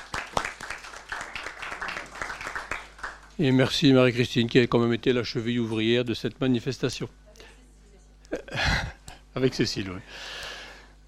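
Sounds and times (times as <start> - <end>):
audience applause: 0.0 - 3.4
speech: 3.4 - 7.2, 9.4 - 10.4.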